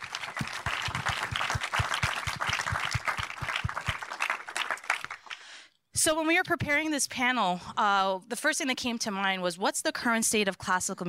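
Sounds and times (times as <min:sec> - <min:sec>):
audience applause: 0:00.0 - 0:05.4
speech: 0:06.0 - 0:11.0.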